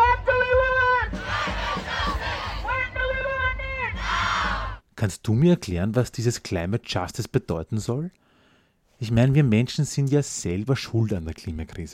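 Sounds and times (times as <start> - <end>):
protest crowd chanting a slogan at a demonstration: 0.1 - 3.1, 3.9 - 4.8
speech: 5.0 - 8.2, 9.0 - 11.9.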